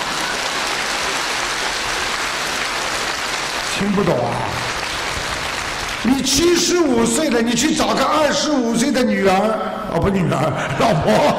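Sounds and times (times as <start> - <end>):
applause: 0.0 - 7.5
speech: 3.8 - 4.7, 6.0 - 11.3
laughter: 10.5 - 11.3.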